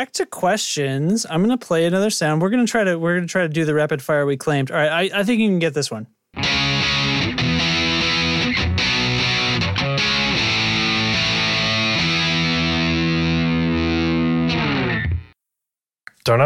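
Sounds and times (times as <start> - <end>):
speech: 0.0 - 6.2, 16.3 - 16.4
electric guitar chords through a Dirty Little Secret overdrive pedal: 6.4 - 15.4.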